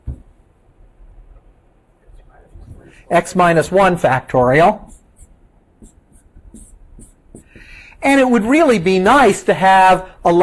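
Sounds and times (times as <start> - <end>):
low hum: 0.0 - 10.4
speech: 3.1 - 4.9, 8.0 - 10.4
writing a math formula on a board: 4.6 - 7.7.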